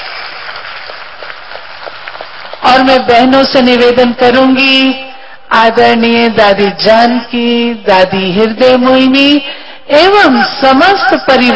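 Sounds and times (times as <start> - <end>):
audience applause at a spiritual gathering: 0.0 - 2.6
speech: 2.6 - 11.5.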